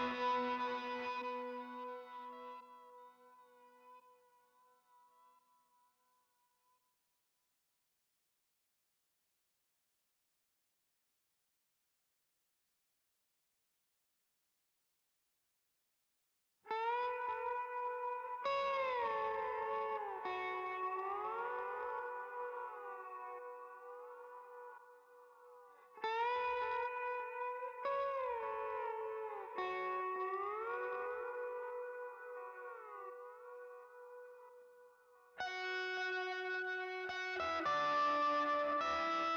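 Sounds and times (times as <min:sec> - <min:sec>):
guitars: 0:00.0 - 0:04.0, 0:16.7 - 0:39.3.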